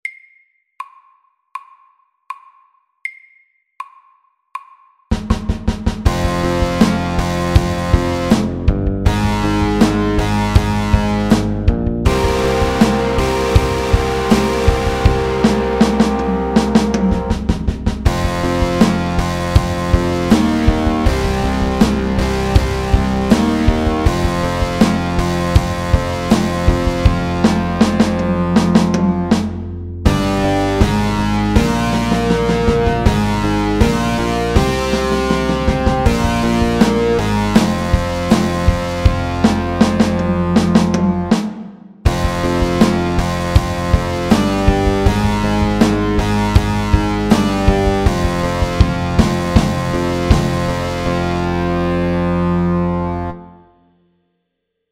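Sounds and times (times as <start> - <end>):
slow pirate rock music: 5.2 - 41.5, 42.1 - 53.5.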